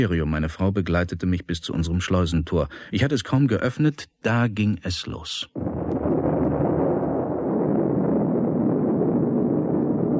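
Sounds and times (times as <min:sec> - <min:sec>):
speech: 0:00.0 - 0:05.6
explosion: 0:05.5 - 0:10.1.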